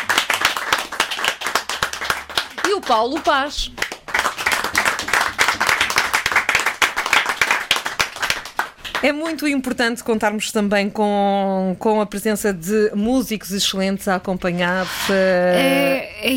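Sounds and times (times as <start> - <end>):
audience applause: 0.0 - 9.0
speech: 2.8 - 3.8, 9.0 - 16.3.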